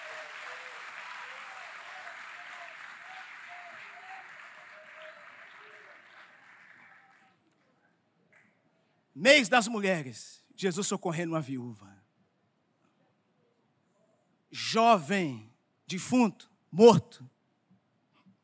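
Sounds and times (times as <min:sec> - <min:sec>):
audience applause: 0:00.0 - 0:07.4
speech: 0:09.2 - 0:12.0, 0:14.7 - 0:17.4.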